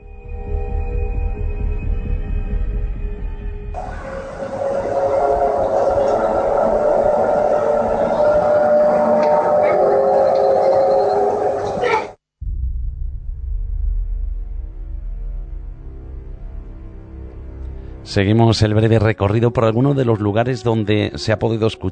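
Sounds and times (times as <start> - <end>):
mysterious low hum: 0.0 - 11.8, 12.4 - 18.1
speech: 18.2 - 21.9.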